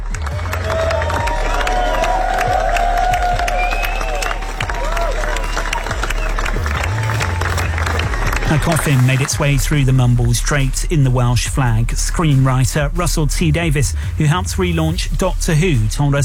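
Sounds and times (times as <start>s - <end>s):
fans applauding a funeral procession: 0.0s - 9.8s
speech: 8.5s - 16.2s.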